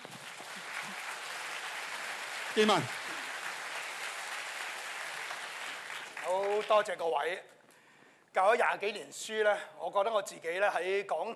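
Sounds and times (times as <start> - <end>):
audience applause: 0.0 - 6.9
speech: 2.6 - 3.0, 6.5 - 7.6, 8.4 - 11.3.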